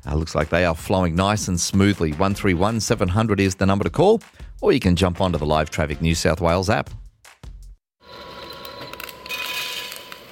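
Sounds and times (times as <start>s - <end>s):
speech: 0.0s - 7.0s
coffee beans being roasted: 8.0s - 10.2s.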